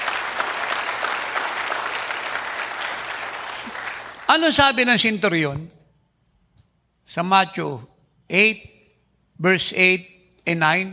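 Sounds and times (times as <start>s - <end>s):
audience applause: 0.0s - 4.4s
speech: 4.3s - 5.8s, 7.1s - 8.7s, 9.4s - 10.9s.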